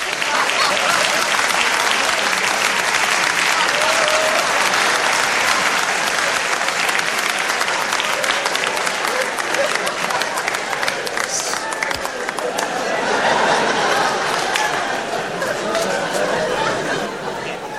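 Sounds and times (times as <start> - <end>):
enthusiastic audience applause: 0.0 - 17.7
laughter: 0.0 - 17.7.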